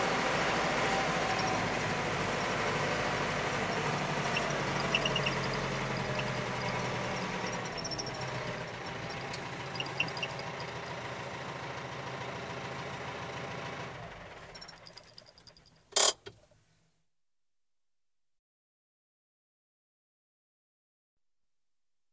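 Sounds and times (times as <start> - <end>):
Ford 7610 tractor engine: 0.0 - 16.5.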